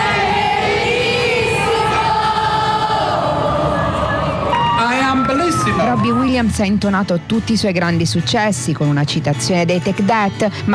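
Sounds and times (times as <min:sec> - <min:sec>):
concert audience answering the singer in unison: 0:00.0 - 0:06.2
dense crowd noise: 0:00.0 - 0:07.1
speech: 0:06.0 - 0:10.7.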